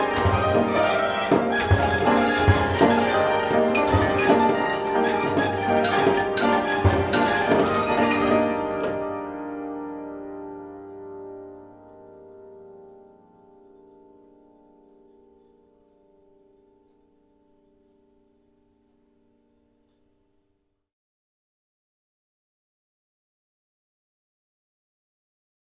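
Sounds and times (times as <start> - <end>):
orchestrion playing: 0.0 - 9.3.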